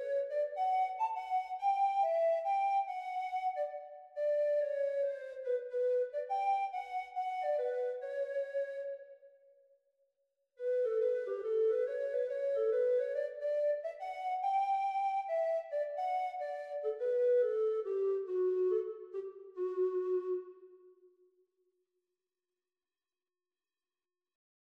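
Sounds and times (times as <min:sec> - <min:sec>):
treble recorder performance: 0:00.0 - 0:09.0, 0:10.6 - 0:20.8.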